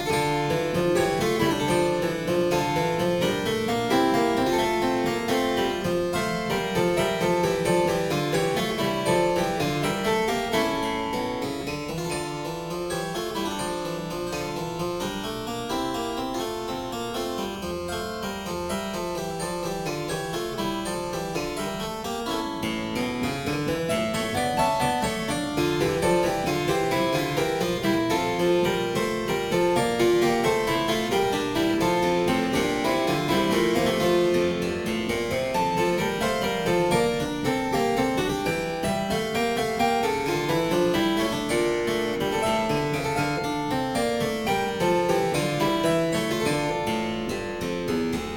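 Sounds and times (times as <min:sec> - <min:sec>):
harpsichord suite variation in D minor: 0:00.0 - 0:48.3.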